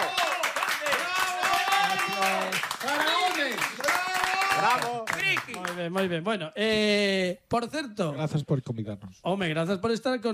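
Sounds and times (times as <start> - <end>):
applause for guests from the Galicia Friki Film Festival: 0.0 - 6.2
speech: 4.6 - 10.3.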